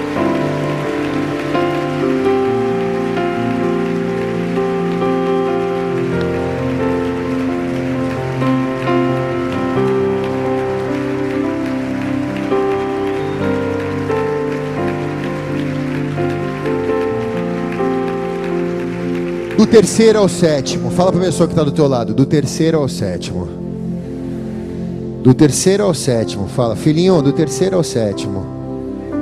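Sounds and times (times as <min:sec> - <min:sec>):
loud applause from a large crowd: 0:00.0 - 0:21.7
held keyboard-like chords: 0:00.0 - 0:29.1
speech: 0:19.7 - 0:23.6, 0:25.2 - 0:28.6.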